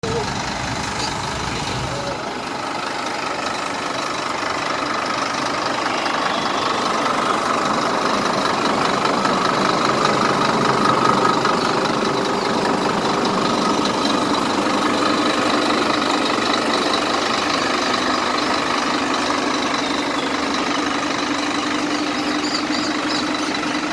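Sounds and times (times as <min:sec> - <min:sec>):
Scania K310IA 6X2 vehicle engine: 0:00.0 - 0:23.9.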